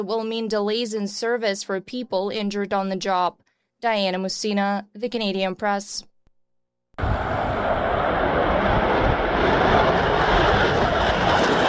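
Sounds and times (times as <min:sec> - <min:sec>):
speech: 0:00.0 - 0:06.1
aircraft engine roar at Airshow London, London International Airport: 0:07.0 - 0:11.6.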